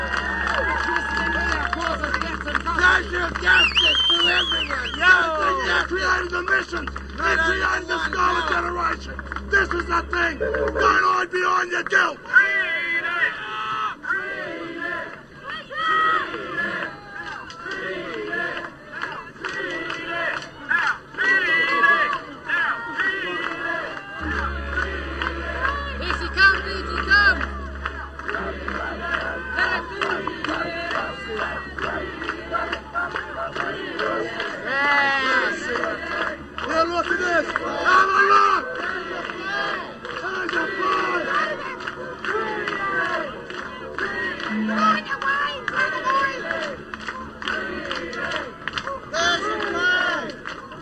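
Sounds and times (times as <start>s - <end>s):
crowd yelling: 0.0s - 11.2s, 12.2s - 50.4s
speech: 3.3s - 12.6s.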